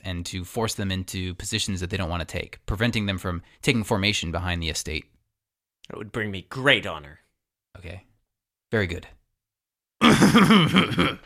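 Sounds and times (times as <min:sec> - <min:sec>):
speech: 0:00.0 - 0:05.1, 0:05.9 - 0:07.2, 0:07.8 - 0:08.1, 0:08.7 - 0:09.2, 0:10.0 - 0:11.2
person clearing throat: 0:10.0 - 0:11.2.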